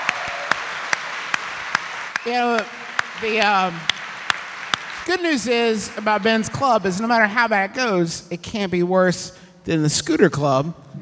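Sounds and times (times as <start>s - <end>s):
audience clapping at a live holiday comedy show: 0.0s - 7.6s
speech: 2.2s - 4.0s, 5.0s - 10.9s.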